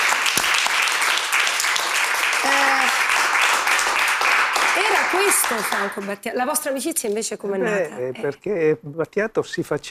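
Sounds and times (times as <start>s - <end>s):
applause: 0.0s - 6.2s
speech: 5.1s - 9.9s.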